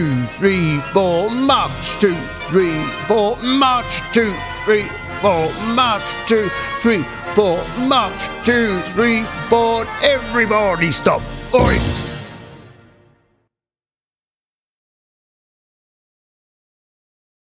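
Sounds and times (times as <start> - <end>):
voice-over narration: 0.0 - 12.2
march music: 0.0 - 13.3.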